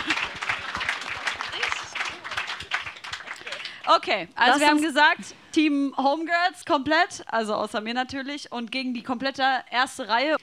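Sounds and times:
audience applause: 0:00.0 - 0:03.9
speech: 0:03.9 - 0:10.4.

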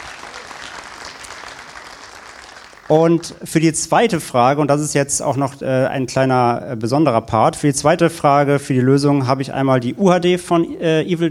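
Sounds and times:
audience applause: 0:00.0 - 0:03.4
speech: 0:02.9 - 0:11.2.

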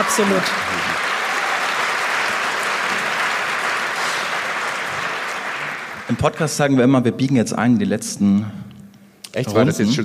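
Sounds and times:
speech: 0:00.0 - 0:00.8, 0:06.1 - 0:08.6, 0:09.3 - 0:10.0
audience applause: 0:00.0 - 0:06.4.

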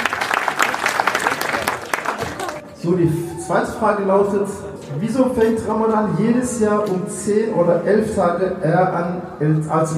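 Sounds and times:
audience clapping for a correct answer in a Ramadan quiz: 0:00.0 - 0:02.6
speech: 0:02.8 - 0:09.9.

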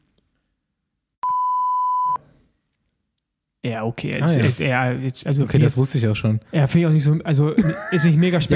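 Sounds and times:
censor bleep over a name: 0:01.2 - 0:02.2
speech: 0:03.6 - 0:08.5
laughter: 0:04.2 - 0:04.7, 0:07.5 - 0:08.5.

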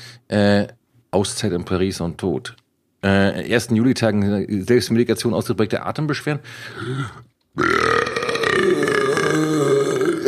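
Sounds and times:
speech: 0:00.3 - 0:07.9
person burping: 0:06.8 - 0:10.2.

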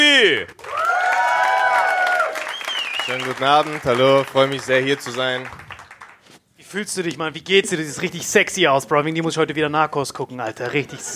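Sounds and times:
audience cheering and whooping: 0:00.6 - 0:03.3
audience applause: 0:00.6 - 0:06.3
speech: 0:03.1 - 0:05.6, 0:06.7 - 0:11.1.

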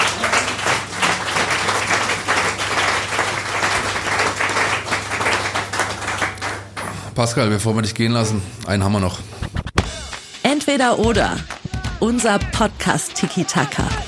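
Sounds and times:
audience applause: 0:00.0 - 0:07.2
speech: 0:07.2 - 0:09.3, 0:10.7 - 0:14.0.

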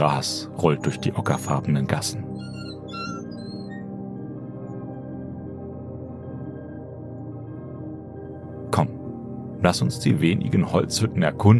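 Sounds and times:
speech: 0:00.0 - 0:02.4, 0:09.6 - 0:11.5
metal signs squeaking as wind turns them: 0:02.4 - 0:03.8.

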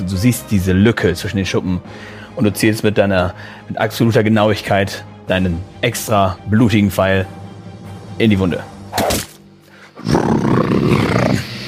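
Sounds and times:
speech: 0:00.0 - 0:07.4, 0:08.2 - 0:09.3
crocodile screaming: 0:10.0 - 0:11.6.

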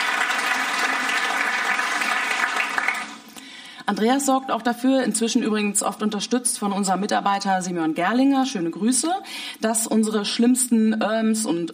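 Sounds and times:
audience applause: 0:00.0 - 0:03.3
speech: 0:03.9 - 0:11.7.

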